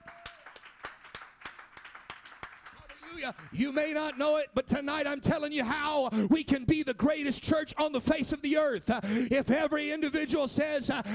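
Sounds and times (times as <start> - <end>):
audience clapping hands: 0.0 - 4.6
speech: 3.1 - 11.1.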